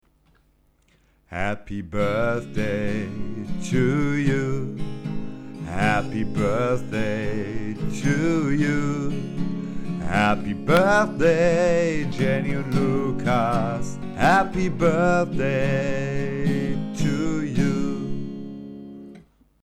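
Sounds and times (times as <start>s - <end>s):
people singing birthday song: 1.3s - 4.8s, 5.6s - 9.2s, 10.0s - 18.5s.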